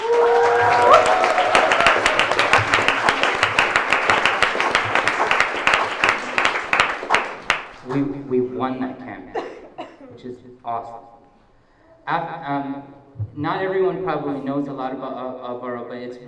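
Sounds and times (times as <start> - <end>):
audience cheering: 0.0 - 8.0
speech: 8.7 - 9.5, 10.2 - 11.2, 12.0 - 16.2.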